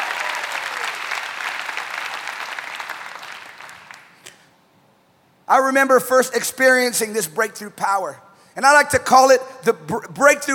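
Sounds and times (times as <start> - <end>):
audience clapping: 0.0 - 4.5
speech: 5.5 - 10.5.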